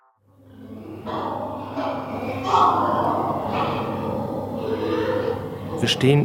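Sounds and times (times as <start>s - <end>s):
pigs squealing: 1.0s - 5.8s.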